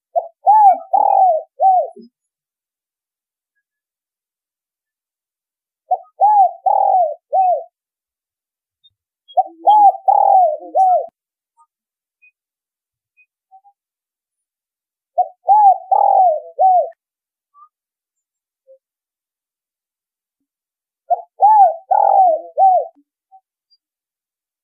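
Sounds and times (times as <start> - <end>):
spotted dove cooing: 0.1 - 2.1, 5.9 - 7.7, 9.4 - 11.1, 15.2 - 17.0, 21.1 - 23.0.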